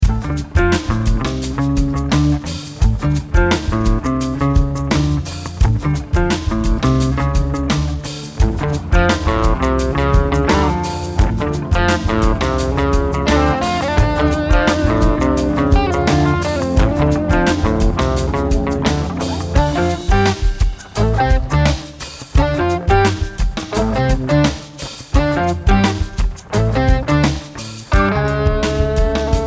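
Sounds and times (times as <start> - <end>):
funk music: 0.0 - 29.4.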